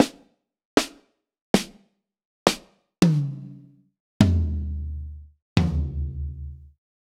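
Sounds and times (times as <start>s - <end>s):
acoustic drum kit: 0.0s - 0.2s, 0.8s - 1.0s, 1.6s - 1.8s, 2.5s - 6.6s.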